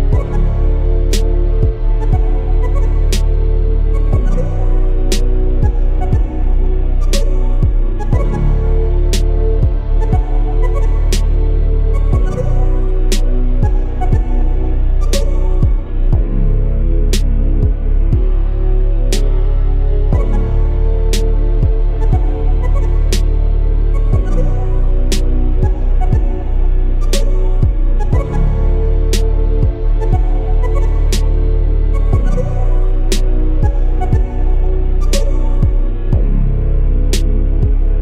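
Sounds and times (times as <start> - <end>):
dark ambient trash music: 0.0 - 38.0.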